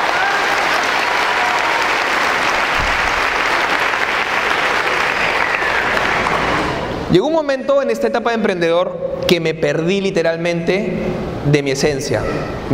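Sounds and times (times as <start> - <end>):
audience applause: 0.0 - 7.0
speech: 7.1 - 12.7.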